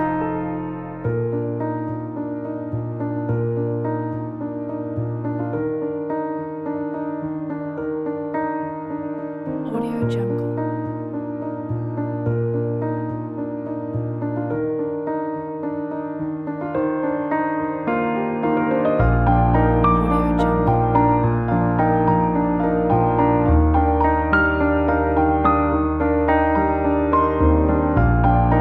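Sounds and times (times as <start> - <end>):
atmospheric inspiring piano music: 0.0 - 28.5.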